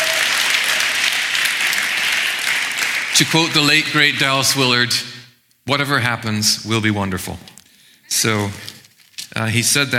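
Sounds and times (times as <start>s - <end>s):
audience round of applause: 0.0s - 4.3s
speech: 3.2s - 7.5s, 8.1s - 8.7s, 9.3s - 9.9s.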